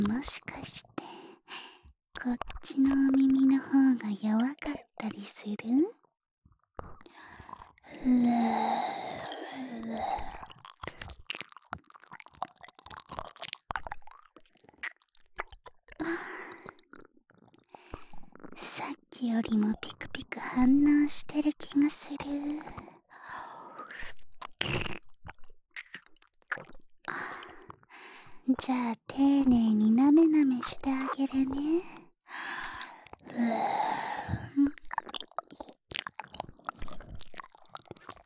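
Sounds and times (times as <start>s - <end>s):
oral sex sounds: 0.0s - 5.9s, 6.8s - 14.1s, 14.7s - 38.2s
nipple licking: 6.8s - 18.6s, 21.5s - 28.4s, 30.3s - 38.2s
ear licking: 6.9s - 18.6s, 23.8s - 27.9s, 32.5s - 38.2s
ghost masturbating: 7.9s - 11.0s, 33.2s - 35.1s.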